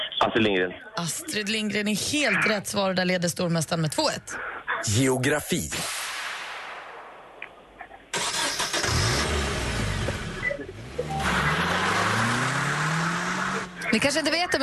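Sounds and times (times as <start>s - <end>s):
speech: 0.3s - 6.0s, 14.0s - 14.6s
Nissan 240 car engine starting and driving off: 8.2s - 14.1s.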